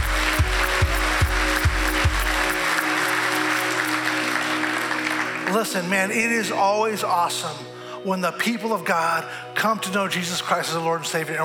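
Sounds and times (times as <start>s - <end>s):
low rhythmic thumps: 0.0s - 2.9s
audience applauding: 0.0s - 5.9s
speech: 5.5s - 11.4s.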